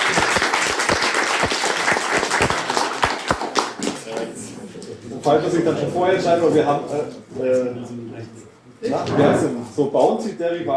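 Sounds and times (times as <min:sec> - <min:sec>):
applause: 0:00.0 - 0:04.4
speech: 0:05.3 - 0:10.7.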